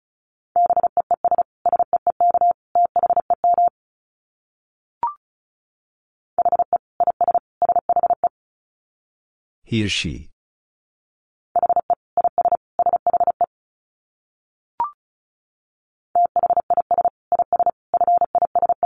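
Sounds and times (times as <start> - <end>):
fast Morse code tones at 35 words per minute: 0.6 - 3.7, 6.4 - 8.3, 11.6 - 13.5, 16.2 - 18.8
speech: 9.7 - 10.3.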